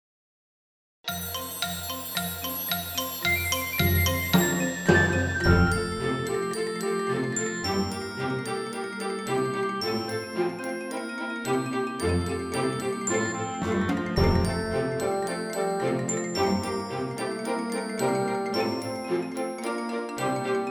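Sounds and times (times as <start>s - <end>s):
musical exercise in F major: 1.1s - 20.6s.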